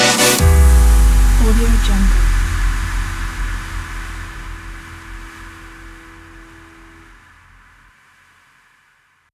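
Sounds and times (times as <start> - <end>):
dubstep music: 0.0 - 5.1.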